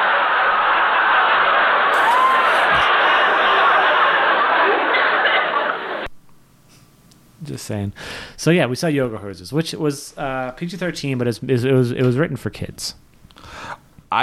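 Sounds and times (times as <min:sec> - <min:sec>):
studio audience laughter sound effect played from a soundboard: 0:00.0 - 0:06.1
speech: 0:07.6 - 0:13.1.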